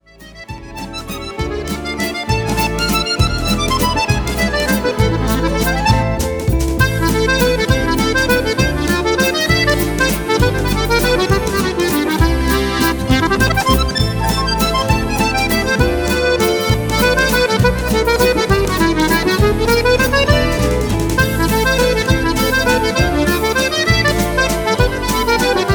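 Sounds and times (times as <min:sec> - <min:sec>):
musette music: 0:00.0 - 0:25.7.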